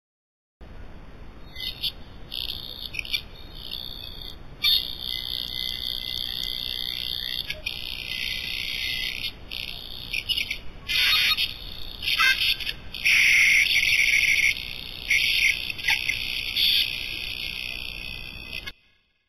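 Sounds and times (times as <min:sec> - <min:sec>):
signal sound: 0:02.5 - 0:18.8.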